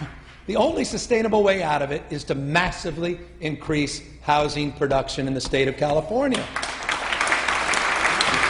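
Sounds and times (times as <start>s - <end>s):
speech: 0.5s - 6.7s
tepid audience applause, golf claps: 6.3s - 8.4s.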